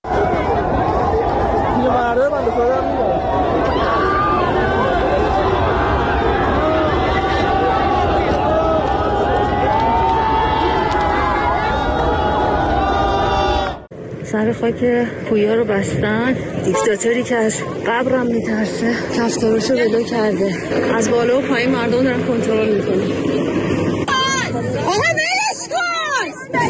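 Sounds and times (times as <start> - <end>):
crowd chatter and shouting coming down from a cemetery section: 0.0 - 13.9, 15.8 - 26.6
speech: 14.6 - 23.4.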